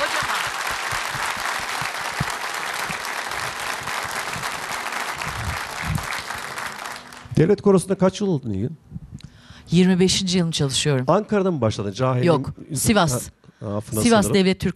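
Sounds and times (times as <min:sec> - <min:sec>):
audience applause for folk choir singers: 0:00.0 - 0:07.5
speech: 0:07.4 - 0:08.9, 0:09.7 - 0:14.7.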